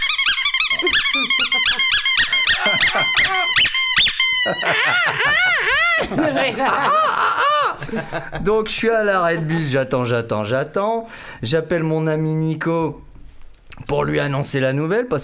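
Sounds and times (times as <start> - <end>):
person imitating a seagull's cry: 0.0 - 6.2
laughter: 0.7 - 3.7, 4.3 - 8.6
speech: 0.8 - 13.1, 13.8 - 15.2.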